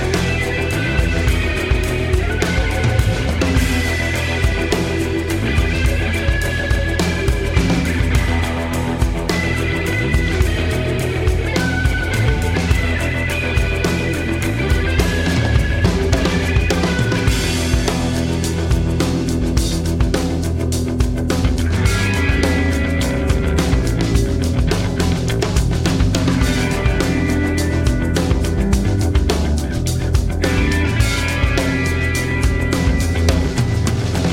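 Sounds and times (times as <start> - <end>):
drums: 0.0 - 34.3.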